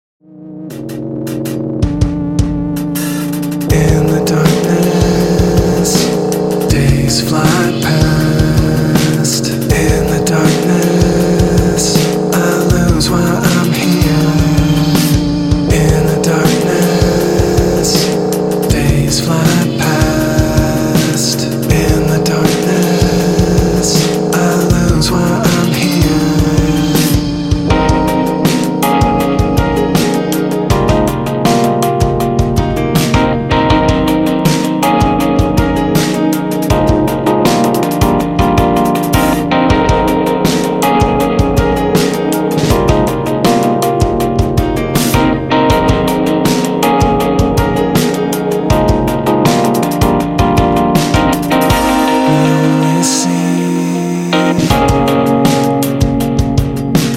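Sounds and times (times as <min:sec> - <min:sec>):
electronic neo soul music: 0:00.2 - 0:57.1.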